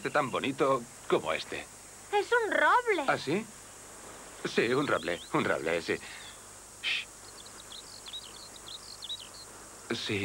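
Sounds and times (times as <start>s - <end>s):
speech: 0.0s - 3.6s, 4.4s - 6.2s, 6.8s - 7.1s, 9.9s - 10.2s
low steady hum: 0.0s - 10.2s
skylark singing: 4.5s - 9.6s.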